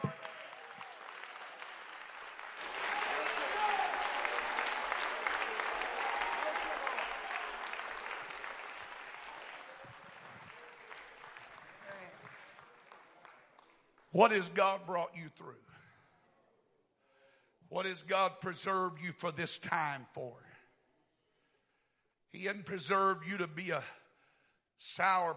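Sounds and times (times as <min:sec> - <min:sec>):
audience clapping hands: 0:00.0 - 0:14.4
speech: 0:14.2 - 0:15.8, 0:17.7 - 0:20.5, 0:22.3 - 0:24.0, 0:24.8 - 0:25.3.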